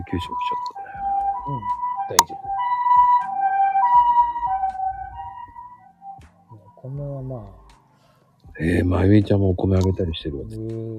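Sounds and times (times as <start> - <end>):
speech: 0.0 - 0.8, 1.5 - 2.6, 6.8 - 7.6, 8.6 - 10.9
two-tone ambulance siren passing outside: 0.0 - 7.0.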